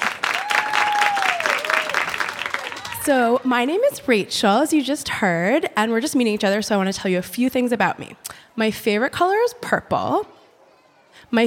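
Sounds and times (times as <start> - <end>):
audience applause for comedian: 0.0 - 3.2
speech: 3.1 - 10.4, 11.2 - 11.4.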